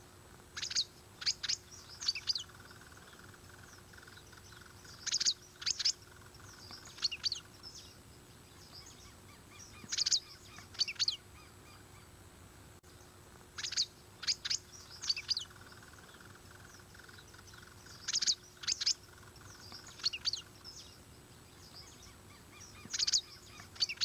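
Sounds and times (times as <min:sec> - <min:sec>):
dragon bird song high chirps: 0:00.5 - 0:12.1, 0:13.5 - 0:24.0.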